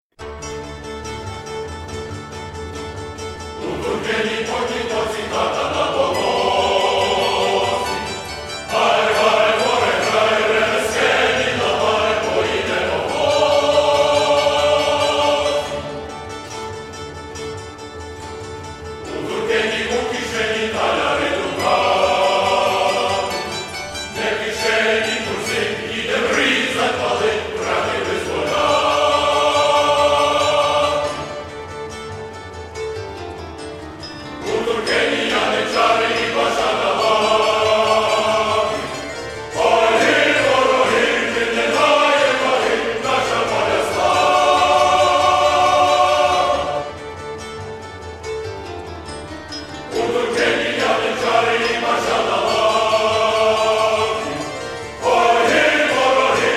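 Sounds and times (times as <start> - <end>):
instrumental music: 0.2 - 56.5.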